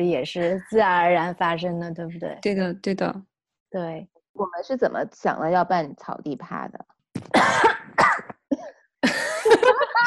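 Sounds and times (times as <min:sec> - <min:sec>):
speech: 0:00.0 - 0:07.7
cough: 0:07.2 - 0:08.8
laughter: 0:09.0 - 0:10.0.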